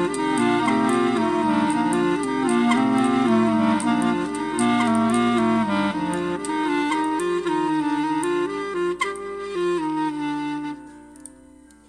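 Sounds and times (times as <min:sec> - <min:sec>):
clarinet canon: 0:00.0 - 0:11.8.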